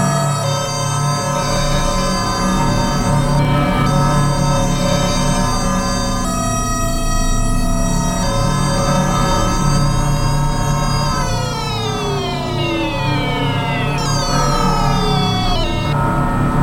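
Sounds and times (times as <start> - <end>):
dark granular looper drone loops: 0.0 - 16.6.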